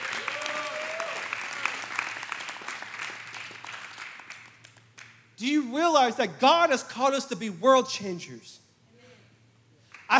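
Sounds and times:
audience applause: 0.0 - 4.8
speech: 5.4 - 8.6.

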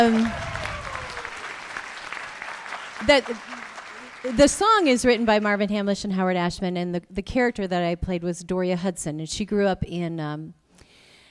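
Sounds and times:
speech: 0.0 - 0.4, 3.1 - 3.5, 4.2 - 10.6
audience applause following a sung number: 0.0 - 5.7.

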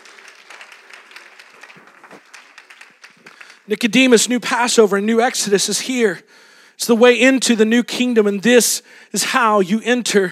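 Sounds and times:
crowd clapping: 0.0 - 4.3
speech: 3.7 - 10.3.

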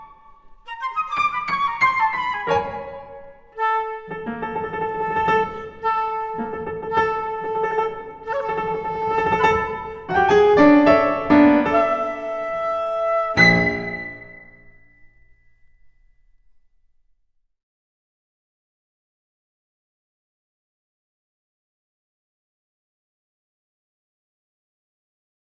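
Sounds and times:
flute miniatures: 0.0 - 15.1.

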